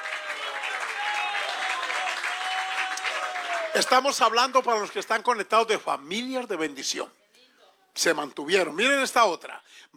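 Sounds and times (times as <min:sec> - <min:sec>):
audience applause: 0:00.0 - 0:05.1
speech: 0:03.8 - 0:07.2, 0:08.0 - 0:09.9.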